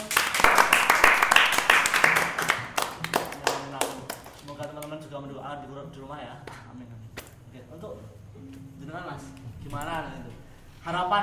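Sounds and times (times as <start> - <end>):
crowd clapping: 0.0 - 5.0.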